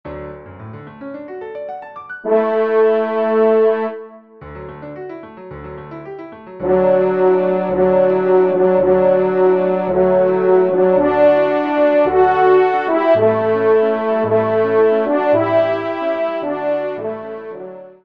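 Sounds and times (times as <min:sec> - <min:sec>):
horn: 0:02.2 - 0:04.4, 0:06.6 - 0:18.0.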